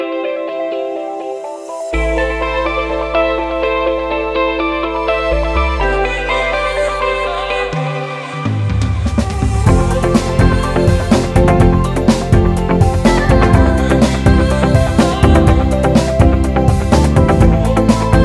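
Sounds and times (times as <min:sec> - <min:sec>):
musical accompaniment: 0:00.1 - 0:18.2.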